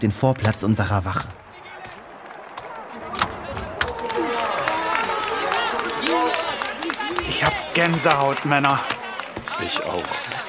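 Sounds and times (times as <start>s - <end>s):
speech: 0.0s - 1.4s, 7.3s - 9.0s, 9.6s - 10.4s
crowd applauding and cheering outside: 1.4s - 10.4s.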